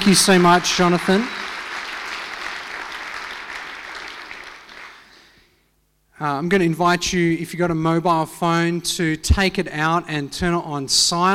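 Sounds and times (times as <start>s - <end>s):
speech: 0.0s - 1.4s, 6.2s - 11.3s
crowd applauding: 0.0s - 5.4s.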